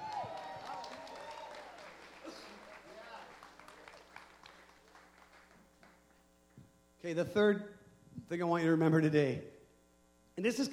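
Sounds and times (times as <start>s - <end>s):
audience cheering: 0.0s - 5.6s
speech: 7.0s - 9.5s, 10.4s - 10.7s.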